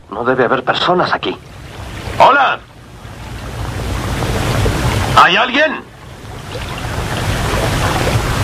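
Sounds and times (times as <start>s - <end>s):
speech: 0.2s - 1.6s, 2.2s - 2.7s, 5.3s - 6.7s
murmur of water: 0.4s - 8.4s.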